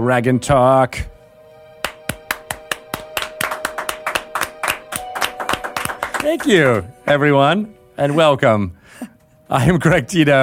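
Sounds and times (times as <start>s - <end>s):
speech: 0.0s - 1.1s, 6.2s - 10.4s
small group of people clapping: 1.8s - 6.8s.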